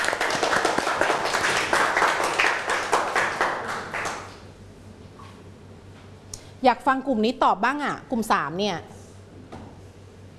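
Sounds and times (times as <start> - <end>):
classroom clapping for a student group: 0.0 - 4.4
speech: 6.6 - 8.9.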